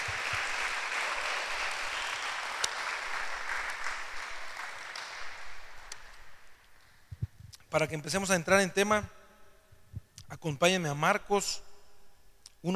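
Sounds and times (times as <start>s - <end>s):
audience applause: 0.0s - 6.5s
speech: 7.7s - 9.2s, 10.4s - 11.7s.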